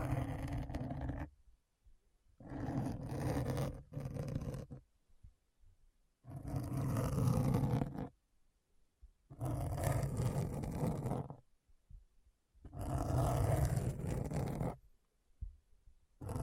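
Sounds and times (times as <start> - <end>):
rough grainy scratching: 0.0 - 1.3, 2.4 - 4.8, 6.3 - 8.1, 9.4 - 11.4, 12.7 - 14.8, 16.2 - 16.4.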